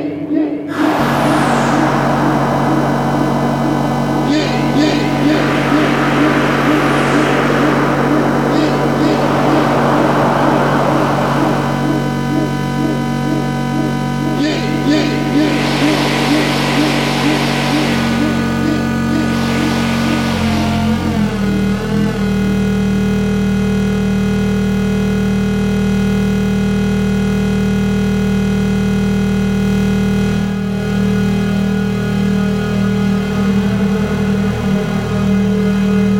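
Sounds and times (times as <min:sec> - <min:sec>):
noise machine: 0:00.1 - 0:36.1.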